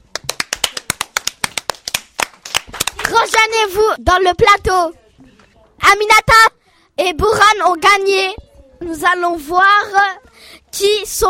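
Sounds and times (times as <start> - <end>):
people clapping for the winners of a drawing contest vote: 0.0 - 3.7
speech: 3.3 - 5.0, 5.8 - 11.2.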